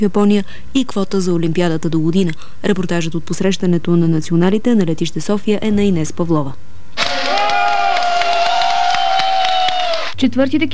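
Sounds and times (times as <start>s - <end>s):
speech: 0.0s - 7.2s, 10.2s - 10.7s
applause welcoming team at airport: 7.0s - 10.2s.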